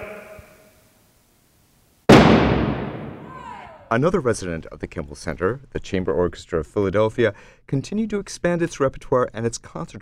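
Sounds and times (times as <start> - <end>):
large percussion hammer strike: 2.1 - 3.6
speech: 3.9 - 10.0.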